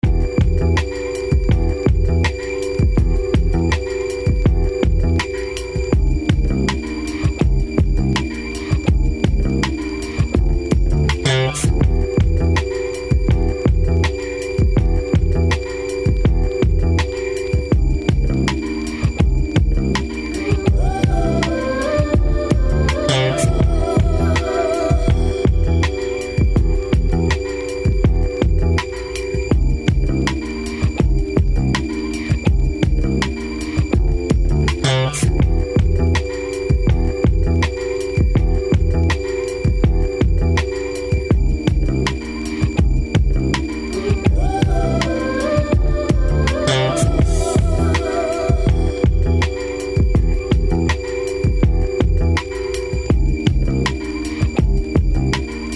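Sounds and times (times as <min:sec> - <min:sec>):
instrumental music: 0:00.0 - 0:55.7.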